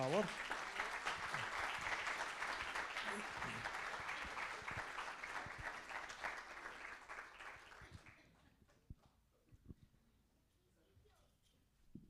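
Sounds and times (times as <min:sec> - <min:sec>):
audience applause: 0:00.0 - 0:08.3.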